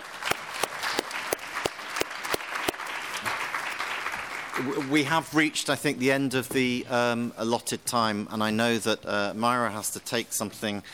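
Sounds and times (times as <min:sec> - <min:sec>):
audience applause for panelists: 0:00.0 - 0:05.2
speech: 0:04.6 - 0:10.9.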